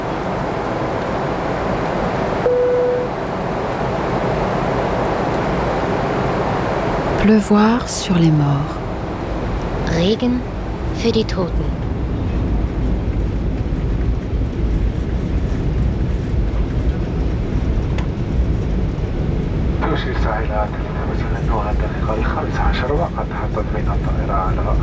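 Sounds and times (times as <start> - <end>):
airplane roar on approach for landing: 0.0 - 24.8
speech: 7.2 - 8.8, 10.0 - 11.8.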